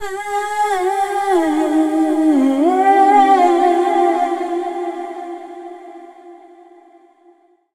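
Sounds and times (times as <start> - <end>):
female dance vocals: 0.0 - 5.6.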